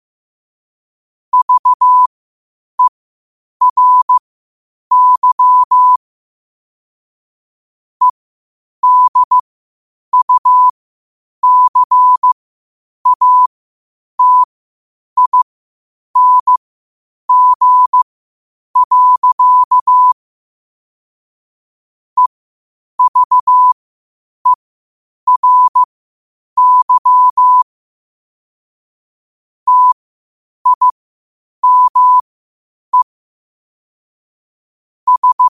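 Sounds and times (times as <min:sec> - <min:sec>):
morse code at 5 wpm: 0:01.4 - 0:02.1, 0:03.6 - 0:04.2, 0:04.9 - 0:06.0, 0:08.8 - 0:09.4, 0:10.1 - 0:10.7, 0:11.4 - 0:12.4, 0:13.0 - 0:13.5, 0:14.2 - 0:14.5, 0:15.2 - 0:15.4, 0:16.2 - 0:16.6, 0:17.3 - 0:18.0, 0:18.8 - 0:20.2, 0:23.0 - 0:23.8, 0:25.3 - 0:25.9, 0:26.6 - 0:27.6, 0:29.7 - 0:30.0, 0:30.6 - 0:31.0, 0:31.6 - 0:32.2, 0:35.1 - 0:35.5.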